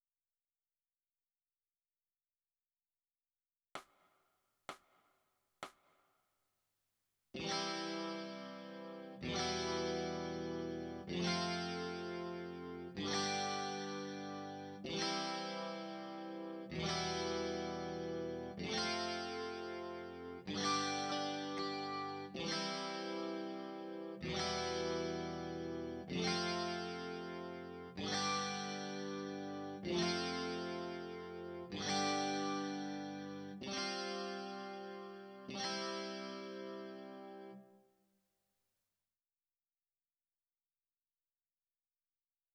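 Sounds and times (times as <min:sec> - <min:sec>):
electric guitar: 0:07.4 - 0:37.7.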